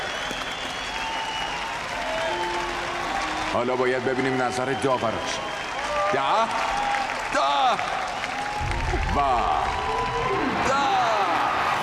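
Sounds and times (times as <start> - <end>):
crowd applauding: 0.0 - 11.8
faint whistles or cheers: 0.0 - 11.8
speech: 3.5 - 6.7, 9.2 - 9.8.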